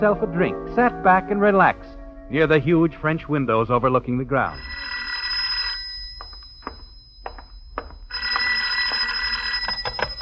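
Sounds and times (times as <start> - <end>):
speech: 0.0 - 4.8
telephone bell ringing: 4.6 - 10.1.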